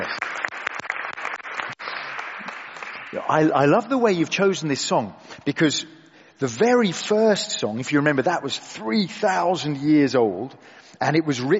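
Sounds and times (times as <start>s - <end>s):
audience applause: 0.0s - 3.5s
speech: 3.1s - 11.5s.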